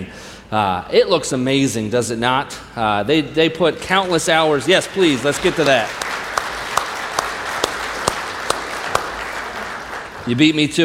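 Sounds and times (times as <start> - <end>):
speech: 0.0 - 6.1, 10.3 - 10.8
audience applause: 4.6 - 10.7.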